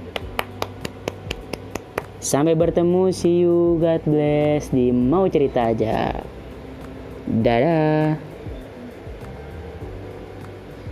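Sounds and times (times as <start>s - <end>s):
hand claps: 0.0s - 2.2s
low hum: 0.0s - 10.9s
speech: 2.2s - 6.4s, 7.3s - 8.3s.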